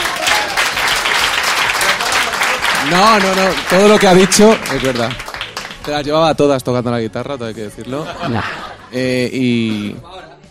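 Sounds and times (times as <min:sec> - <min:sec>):
audience applause: 0:00.0 - 0:06.2
speech: 0:02.9 - 0:05.2, 0:05.8 - 0:10.1
laughter: 0:07.8 - 0:10.4.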